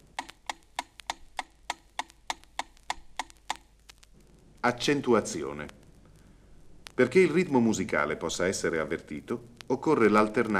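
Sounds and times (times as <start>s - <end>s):
metronome ticking at 200 beats per minute: 0.0s - 3.7s
speech: 4.6s - 5.8s, 7.0s - 10.5s.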